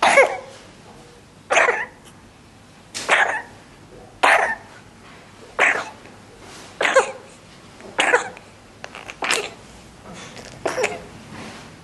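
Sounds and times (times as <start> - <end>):
baby wet raspy RSV cough: 0.0 - 0.5, 1.5 - 2.1, 3.1 - 3.6, 4.2 - 4.7, 5.6 - 6.0, 6.8 - 7.4, 8.0 - 9.6, 10.6 - 11.1.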